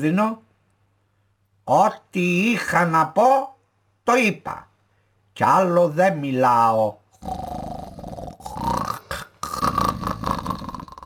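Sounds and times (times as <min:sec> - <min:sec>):
speech: 0:00.0 - 0:00.4, 0:01.7 - 0:04.7, 0:05.4 - 0:07.4
person imitating snoring: 0:07.2 - 0:11.0.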